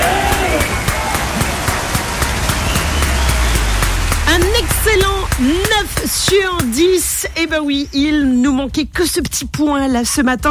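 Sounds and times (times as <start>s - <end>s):
applause: 0.0s - 7.1s
speech: 5.4s - 10.5s.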